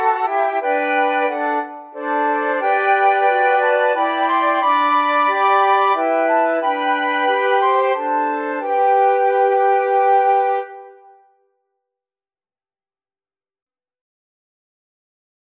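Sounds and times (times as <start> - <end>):
flute quartet playing an anthem: 0.0 - 11.1.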